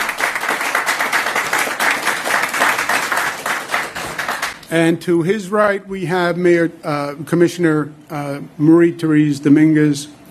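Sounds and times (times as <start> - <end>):
audience applause: 0.0 - 4.6
speech: 4.7 - 10.2.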